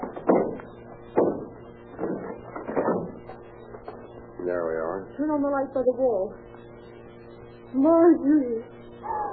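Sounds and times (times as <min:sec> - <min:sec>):
locked door being broken down: 0:00.0 - 0:03.2
speech: 0:04.5 - 0:06.7, 0:07.7 - 0:09.2.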